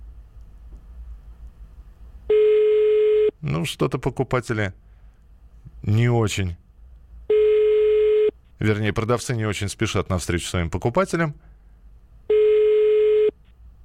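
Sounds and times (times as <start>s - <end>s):
telephone ringback tone: 2.3s - 3.3s, 7.3s - 8.3s, 12.3s - 13.4s
speech: 3.4s - 4.8s, 5.8s - 6.6s, 8.6s - 11.5s.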